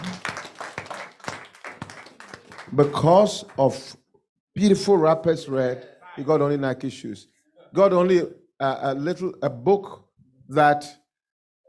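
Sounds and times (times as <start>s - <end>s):
audience clapping: 0.0s - 3.9s
speech: 2.7s - 4.0s, 4.6s - 11.0s.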